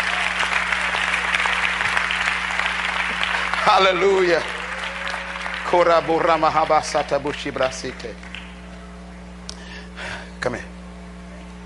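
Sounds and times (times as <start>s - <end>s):
audience clapping: 0.0s - 8.8s
speech: 3.7s - 4.6s, 5.7s - 8.3s, 10.4s - 10.7s.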